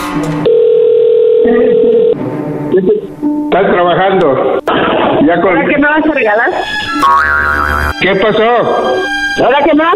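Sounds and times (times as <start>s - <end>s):
speech: 0.2s - 0.5s, 2.7s - 4.6s, 5.2s - 9.9s
telephone dial tone: 0.5s - 2.2s.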